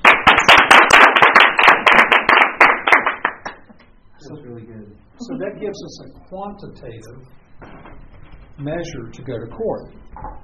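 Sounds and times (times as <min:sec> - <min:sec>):
audience clapping: 0:00.0 - 0:03.8
speech: 0:05.4 - 0:07.5, 0:08.6 - 0:10.4.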